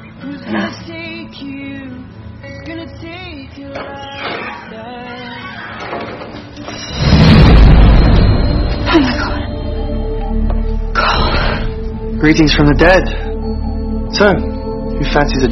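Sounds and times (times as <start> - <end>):
soft tonal music: 0.0 - 15.4
deep rumble of thunder from a storm outside: 7.0 - 9.5
speech: 12.2 - 13.3, 14.2 - 15.4.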